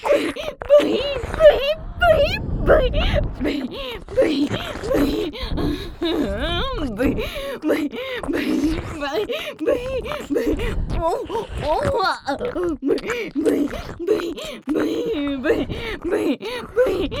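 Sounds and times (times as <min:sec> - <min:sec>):
pig-like moaning: 0:00.0 - 0:17.1
ear licking: 0:02.7 - 0:07.4, 0:08.2 - 0:17.1.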